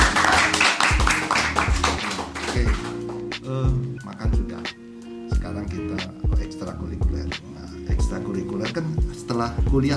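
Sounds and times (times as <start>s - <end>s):
applause: 0.0s - 3.2s
speech: 5.5s - 7.5s, 8.1s - 9.9s.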